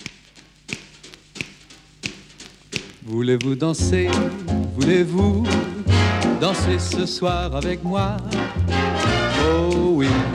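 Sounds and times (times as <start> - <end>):
finger snaps to start a song: 0.0 - 4.9
speech: 3.1 - 5.7, 6.4 - 10.3.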